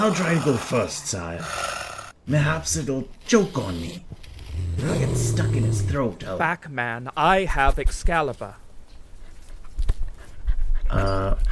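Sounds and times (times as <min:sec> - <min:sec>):
speech: 0:00.0 - 0:04.2, 0:04.8 - 0:08.6, 0:10.9 - 0:11.5
wolf panting: 0:09.0 - 0:11.5.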